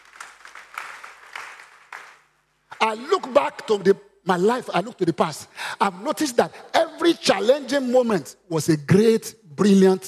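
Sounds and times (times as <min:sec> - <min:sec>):
church congregation clapping hands for Jesus during a sermon: 0:00.0 - 0:03.4
speech: 0:02.8 - 0:10.0.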